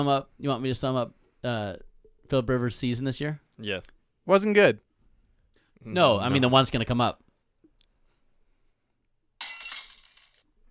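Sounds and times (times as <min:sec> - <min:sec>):
speech: 0:00.0 - 0:04.9, 0:05.8 - 0:07.2
glass breaking: 0:09.4 - 0:10.4
glass shards tinkling: 0:09.4 - 0:10.4.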